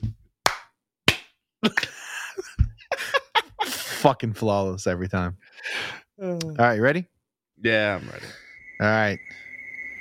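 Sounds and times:
group hand clap: 0.4 - 2.0
laughter: 1.6 - 4.0
speech: 4.0 - 5.5, 6.2 - 9.4.

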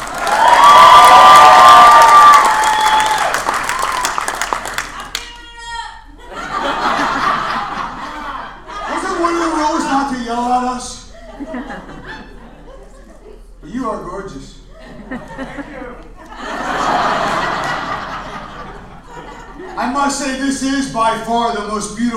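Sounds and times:
audience applause: 0.0 - 5.3
laughter: 6.1 - 9.9, 11.0 - 13.6, 14.7 - 20.2.

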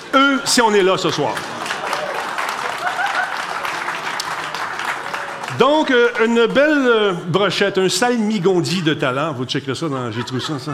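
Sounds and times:
speech: 0.1 - 1.7, 5.6 - 10.7
audience applause: 0.8 - 6.3
laughter: 1.1 - 5.9, 8.6 - 10.7.

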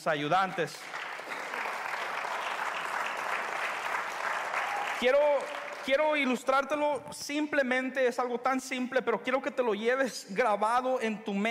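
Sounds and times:
speech: 0.0 - 1.0, 5.0 - 11.5
audience applause: 0.7 - 6.2.

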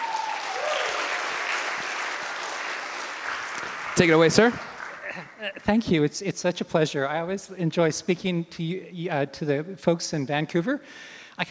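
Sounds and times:
audience applause welcoming a speaker: 0.0 - 5.5
speech: 4.0 - 4.7, 5.4 - 11.5.

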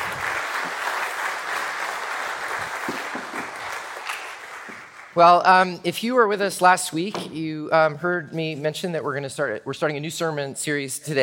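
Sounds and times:
audience applause: 0.0 - 5.2
speech: 5.2 - 11.2.

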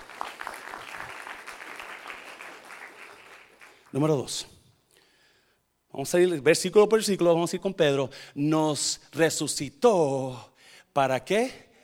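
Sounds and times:
loud applause: 0.0 - 3.9
speech: 3.9 - 4.5, 6.0 - 11.6.

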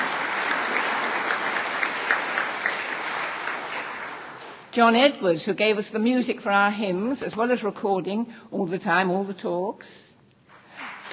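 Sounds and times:
audience applause: 0.0 - 4.7
speech: 4.8 - 10.0.

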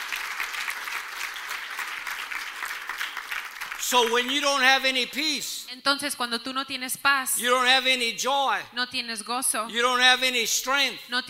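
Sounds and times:
church congregation applauding in praise: 0.0 - 5.2
speech: 3.9 - 11.2.

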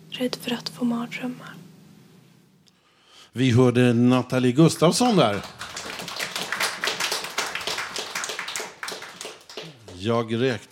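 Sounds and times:
speech: 0.2 - 1.6, 3.3 - 5.6, 10.0 - 10.7
audience applause: 4.7 - 10.7.

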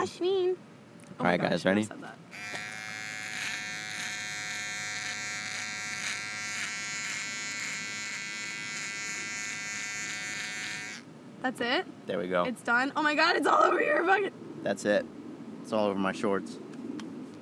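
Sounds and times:
speech: 0.0 - 2.6, 11.4 - 16.6
electric razor buzzing while shaving off a mustache: 2.3 - 11.0.

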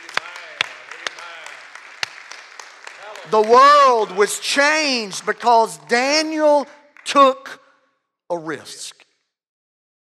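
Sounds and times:
audience clapping hands: 0.0 - 7.6
speech: 3.3 - 7.6, 8.3 - 9.0.

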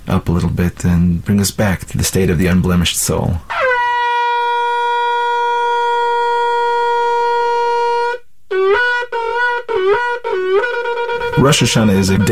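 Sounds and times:
speech: 0.1 - 3.6, 11.4 - 12.3
shofar being blown: 3.5 - 12.3.

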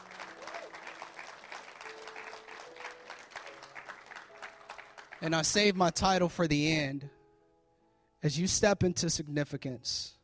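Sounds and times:
audience applause: 0.0 - 5.2
speech: 5.2 - 7.2, 8.2 - 10.2.

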